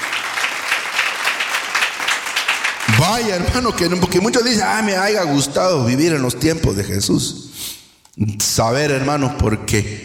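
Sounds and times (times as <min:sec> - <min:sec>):
church congregation clapping for God: 0:00.0 - 0:04.1
speech: 0:03.0 - 0:10.0.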